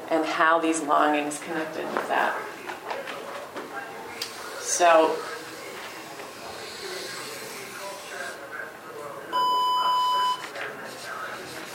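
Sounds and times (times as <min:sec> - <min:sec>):
speech: 0:00.3 - 0:02.6, 0:04.7 - 0:05.3
electronic buzzer beep: 0:09.4 - 0:10.4.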